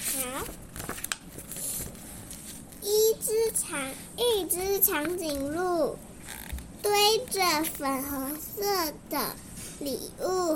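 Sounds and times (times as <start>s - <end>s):
paper book page being turned: 0.0s - 2.8s
speech: 3.7s - 6.1s, 6.8s - 10.5s.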